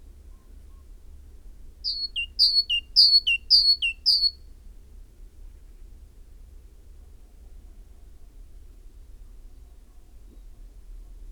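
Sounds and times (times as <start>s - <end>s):
great tit singing: 1.9s - 4.4s.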